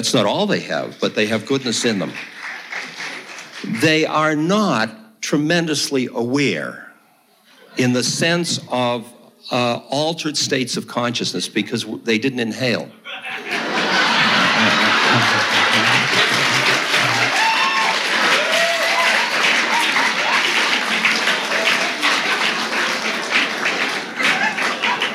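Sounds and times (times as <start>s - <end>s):
speech: 0.0s - 2.4s, 3.6s - 6.8s, 7.8s - 13.5s
crowd applause: 0.9s - 3.9s, 13.3s - 25.1s
scattered voices: 13.1s - 17.4s
laughter: 13.3s - 17.3s, 24.2s - 25.1s.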